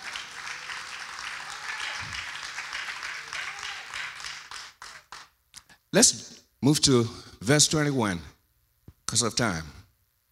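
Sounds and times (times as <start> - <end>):
audience clapping: 0.0 - 5.4
speech: 5.9 - 8.3, 9.1 - 9.8.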